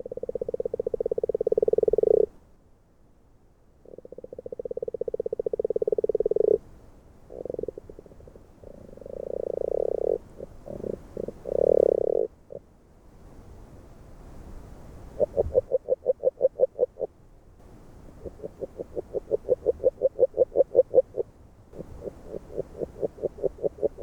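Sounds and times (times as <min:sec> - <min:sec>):
agile frog call in Hungary: 0:00.0 - 0:02.3, 0:03.8 - 0:06.6, 0:07.3 - 0:12.6, 0:15.1 - 0:17.1, 0:18.2 - 0:24.0.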